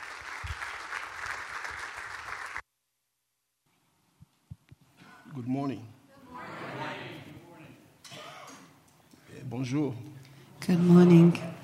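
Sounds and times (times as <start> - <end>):
audience applause welcoming a pastor: 0.0 - 2.6
speech: 5.4 - 6.0, 9.5 - 11.5.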